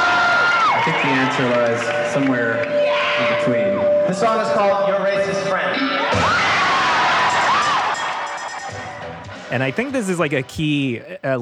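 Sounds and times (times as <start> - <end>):
shrill whistles and whoops: 0.0 - 4.2, 5.8 - 9.0
live concert crowd cheering: 0.0 - 9.5
speech: 0.9 - 6.7, 9.5 - 11.4.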